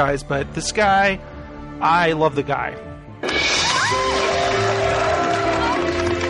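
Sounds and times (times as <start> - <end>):
speech: 0.0 - 4.0
crowd cheering and applause sound clip: 3.2 - 6.2.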